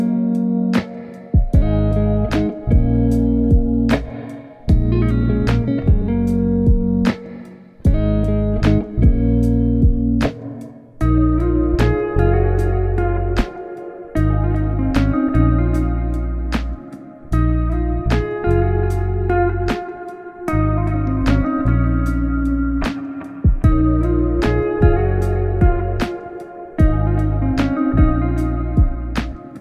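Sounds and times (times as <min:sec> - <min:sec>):
study music: 0:00.0 - 0:29.5.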